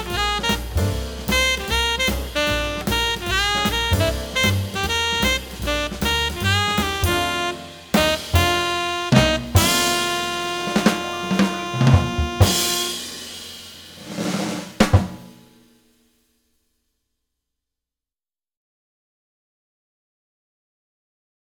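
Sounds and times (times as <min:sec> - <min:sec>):
shuffle rhythm music in F: 0:00.0 - 0:12.9.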